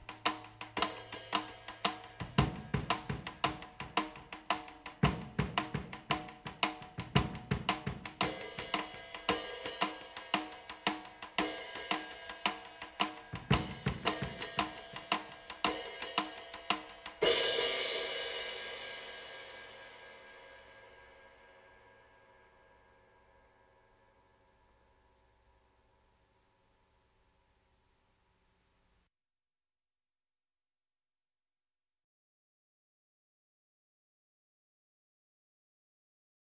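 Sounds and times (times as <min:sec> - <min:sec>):
drums: 0:00.0 - 0:21.9.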